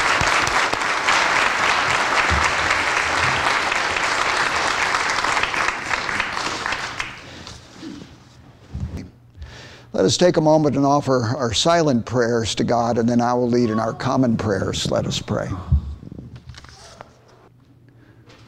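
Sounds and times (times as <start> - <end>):
audience applause for military veterans: 0.0 - 7.3
speech: 10.0 - 15.7.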